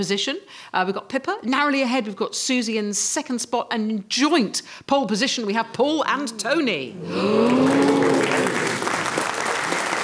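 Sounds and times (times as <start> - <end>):
speech: 0.0 - 8.7
studio audience applause during a quiz show score reveal: 7.0 - 10.0.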